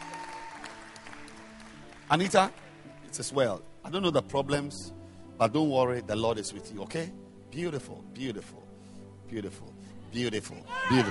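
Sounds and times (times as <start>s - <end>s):
audience clapping: 0.0s - 2.9s
speech: 2.1s - 8.6s, 9.3s - 11.0s.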